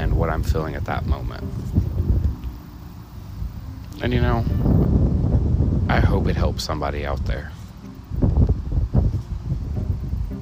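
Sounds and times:
wind blowing outdoors buffeting the microphone: 0:00.0 - 0:10.4
speech: 0:00.2 - 0:01.8, 0:04.0 - 0:05.0, 0:05.9 - 0:07.6.

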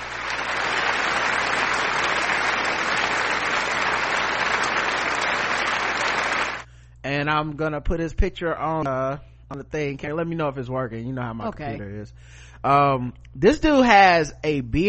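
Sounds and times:
applause sound effect: 0:00.0 - 0:06.7
speech: 0:07.1 - 0:14.8.

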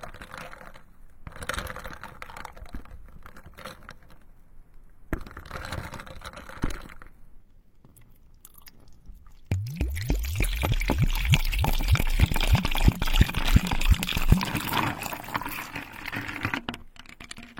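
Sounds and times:
wet squishing and clicking: 0:07.9 - 0:14.6
crackling popping taps: 0:09.5 - 0:14.6.

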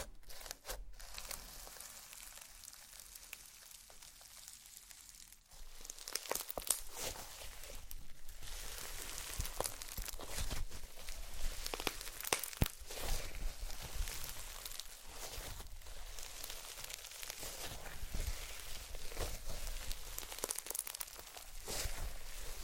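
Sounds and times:
slime being played with, crackling and popping: 0:00.0 - 0:22.6.

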